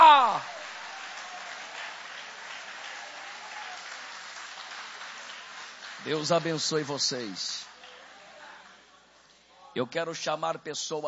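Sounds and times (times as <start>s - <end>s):
audience applause: 0.0s - 8.6s
speech: 6.0s - 7.7s, 9.8s - 11.0s.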